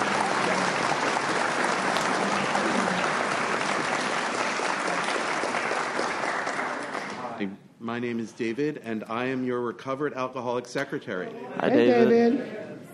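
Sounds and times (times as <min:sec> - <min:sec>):
recovery meeting audience applause for a speaker: 0:00.0 - 0:07.4
speech: 0:07.4 - 0:12.6.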